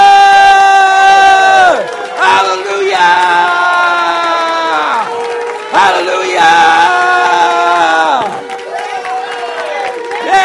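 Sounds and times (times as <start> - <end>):
church congregation shouting praise: 0.0 - 10.4.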